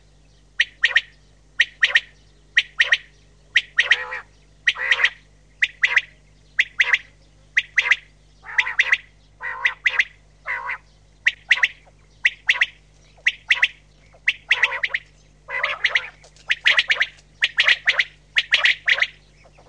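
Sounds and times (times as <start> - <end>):
common quail calling: 0.6 - 19.6.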